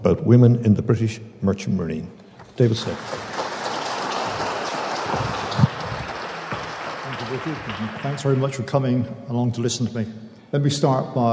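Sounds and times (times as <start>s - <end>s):
speech: 0.2s - 3.3s, 7.3s - 11.3s
audience clapping: 2.4s - 9.0s.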